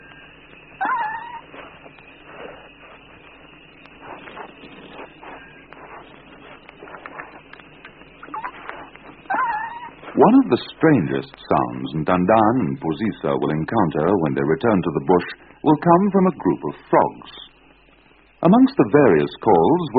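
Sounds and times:
baby grey duiker calling softly to its mother: 0:00.8 - 0:01.8, 0:08.2 - 0:10.2
speech: 0:10.2 - 0:17.4, 0:18.4 - 0:19.9.

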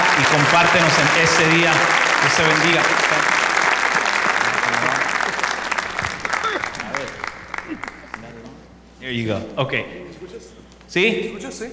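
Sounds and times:
voices and cheers: 0:00.0 - 0:08.3
audience applause: 0:00.0 - 0:08.5
laughter: 0:00.0 - 0:10.7
speech: 0:00.4 - 0:03.3, 0:09.1 - 0:11.7.

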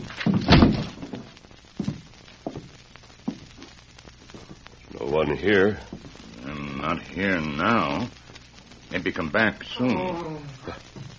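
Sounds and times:
door bursting open with a heavy crash and rattle: 0:00.0 - 0:01.3
speech: 0:05.1 - 0:05.9, 0:06.8 - 0:08.2, 0:08.9 - 0:10.8.

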